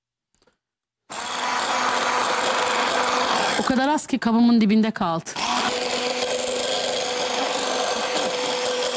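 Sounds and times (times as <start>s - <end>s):
coffee whisked to a froth in a cup: 1.1s - 4.0s, 5.4s - 8.9s
speech: 3.7s - 5.4s.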